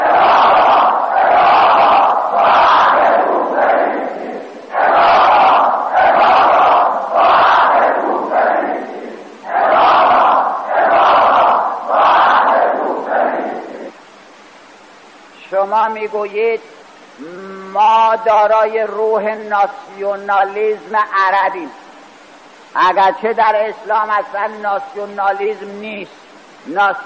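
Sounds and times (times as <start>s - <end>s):
crowd chanting slogans: 0.0s - 14.0s
speech: 16.0s - 21.8s, 22.8s - 27.0s.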